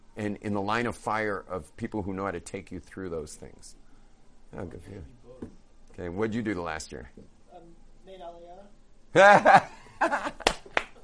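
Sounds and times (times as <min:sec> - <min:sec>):
speech: 0:00.2 - 0:03.8, 0:04.5 - 0:08.5, 0:09.1 - 0:10.2
burst of laughter: 0:09.2 - 0:10.6
single person clapping hands: 0:10.4 - 0:11.0.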